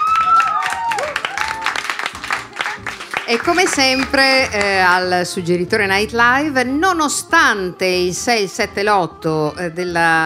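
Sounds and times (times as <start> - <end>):
audience applause: 0.0 - 4.7
speech: 3.3 - 10.2.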